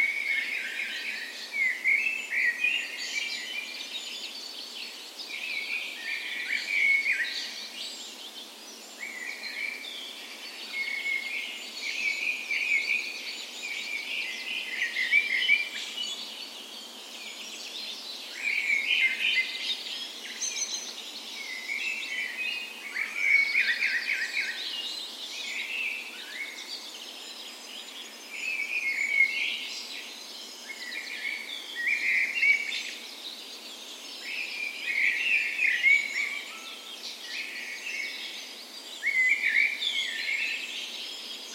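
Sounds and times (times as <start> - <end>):
birds singing a dense dawn chorus: 0.0 - 41.5.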